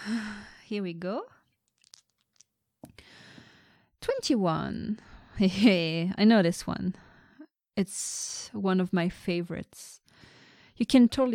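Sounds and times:
speech: 0:00.0 - 0:01.4, 0:04.1 - 0:07.1, 0:07.8 - 0:10.0, 0:10.8 - 0:11.3
dice thrown in a game: 0:01.7 - 0:02.5.

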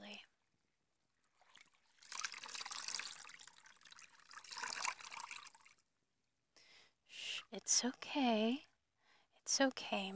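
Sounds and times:
water running while a mother washes her child: 0:01.4 - 0:05.7
speech: 0:07.6 - 0:08.7, 0:09.5 - 0:10.1.

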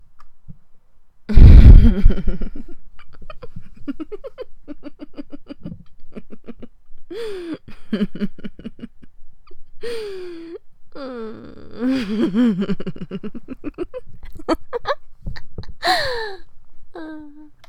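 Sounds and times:
woman giggling: 0:01.3 - 0:09.6, 0:11.4 - 0:16.4.

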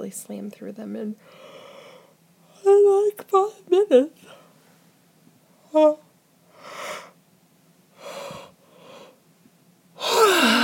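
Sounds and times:
speech: 0:00.1 - 0:01.7, 0:02.6 - 0:04.4, 0:05.7 - 0:06.0
person yawning: 0:10.0 - 0:10.6.

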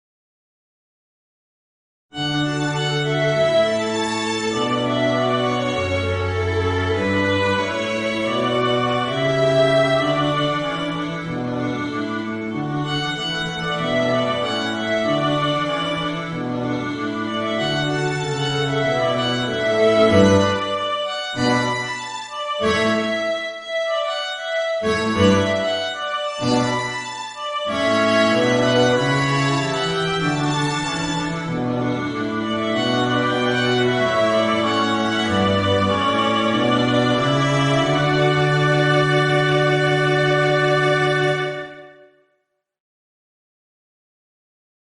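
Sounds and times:
string quartet playing: 0:02.2 - 0:42.0.

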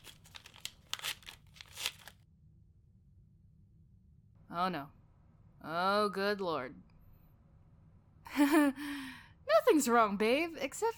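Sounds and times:
fancy envelope being torn open: 0:00.0 - 0:02.2
speech: 0:04.5 - 0:05.0, 0:05.6 - 0:06.9, 0:08.4 - 0:10.9.

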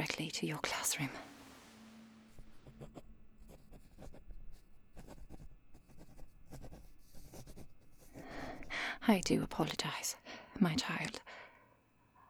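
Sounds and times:
speech: 0:00.2 - 0:01.3, 0:09.1 - 0:11.4
pen scratching on paper writing a tardy slip: 0:02.3 - 0:09.3.

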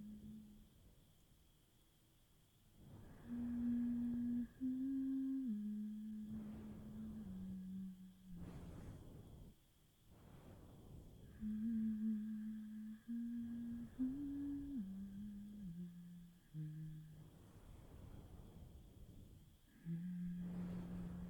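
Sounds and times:
person humming: 0:00.0 - 0:00.6, 0:03.1 - 0:08.6, 0:11.3 - 0:17.3, 0:19.7 - 0:21.2
crickets: 0:00.0 - 0:21.2.

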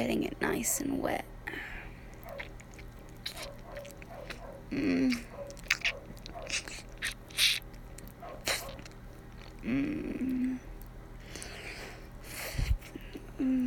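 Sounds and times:
speech: 0:00.0 - 0:01.7, 0:04.7 - 0:05.3, 0:09.6 - 0:10.7
wet sucking and licking mouth sounds: 0:02.1 - 0:13.0.

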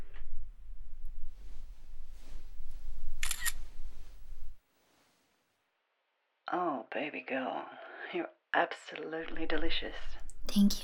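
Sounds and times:
low steady hum: 0:00.0 - 0:04.6, 0:09.3 - 0:10.8
phone camera shutter click: 0:03.2 - 0:03.6
speech: 0:06.5 - 0:10.8.

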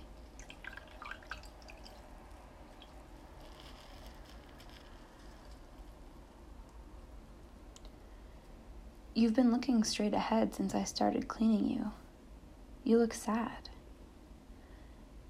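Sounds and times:
water dripping: 0:00.0 - 0:03.6
low hiss: 0:00.0 - 0:15.2
speech: 0:09.2 - 0:12.0, 0:12.9 - 0:13.7.

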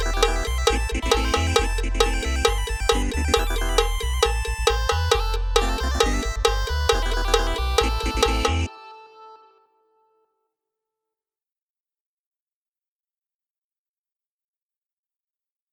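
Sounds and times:
electronic cowbell remix: 0:00.0 - 0:08.8.

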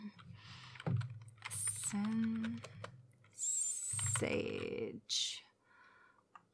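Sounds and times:
fingers typing on a computer keyboard: 0:00.2 - 0:04.8
speech: 0:04.2 - 0:05.2.

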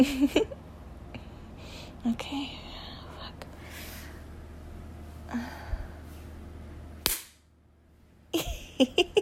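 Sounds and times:
speech: 0:00.0 - 0:00.6, 0:02.0 - 0:02.7, 0:05.3 - 0:05.7, 0:08.8 - 0:09.1
slapping a toy held between thighs: 0:07.0 - 0:07.5.

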